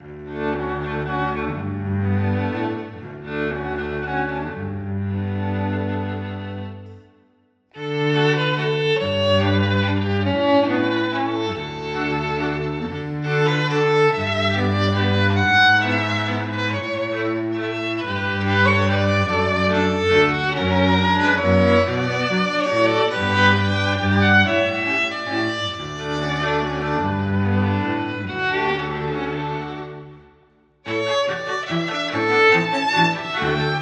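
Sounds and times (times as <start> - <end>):
classical cinematic underscore: 0.0 - 33.8.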